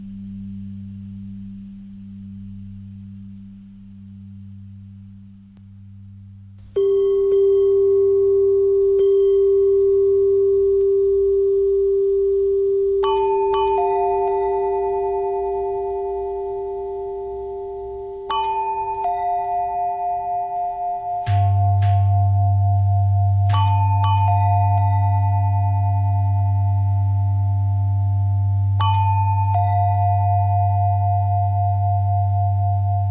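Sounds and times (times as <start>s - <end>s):
long bending bell tones: 6.7s - 33.0s.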